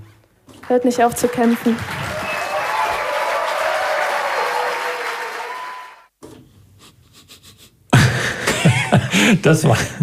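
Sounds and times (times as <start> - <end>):
speech: 0.7 - 2.0, 9.3 - 10.0
short applause from small audience: 0.7 - 6.1
laughter: 7.3 - 10.0.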